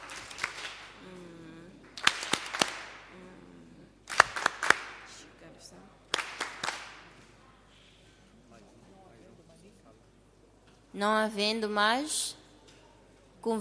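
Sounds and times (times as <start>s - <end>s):
warm applause: 0.0s - 1.0s, 2.0s - 3.0s, 4.1s - 5.2s, 6.1s - 7.2s
speech: 11.0s - 12.4s, 13.4s - 13.6s.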